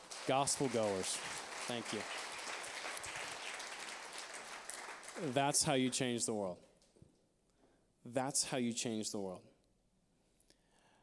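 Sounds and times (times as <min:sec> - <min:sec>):
audience applause: 0:00.0 - 0:06.0
speech: 0:00.3 - 0:02.2, 0:05.2 - 0:06.7, 0:08.0 - 0:09.5.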